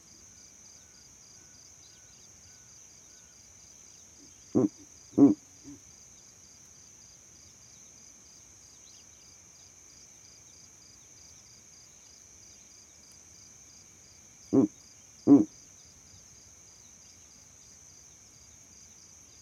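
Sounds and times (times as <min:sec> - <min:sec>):
owl hooting: 0:04.6 - 0:05.8, 0:15.3 - 0:15.5.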